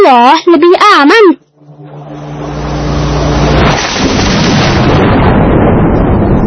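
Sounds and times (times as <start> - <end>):
speech: 0.1 - 1.4
thunder: 2.3 - 6.4.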